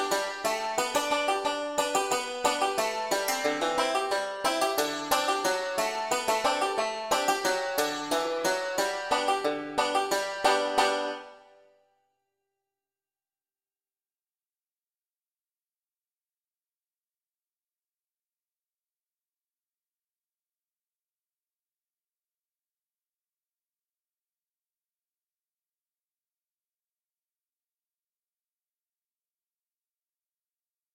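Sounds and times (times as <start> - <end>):
folk tune melody: 0.0 - 11.8.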